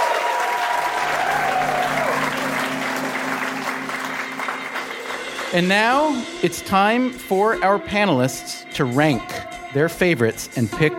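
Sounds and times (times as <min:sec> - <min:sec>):
audience applause at a live comedy game show: 0:00.0 - 0:05.7
speech: 0:05.5 - 0:10.9.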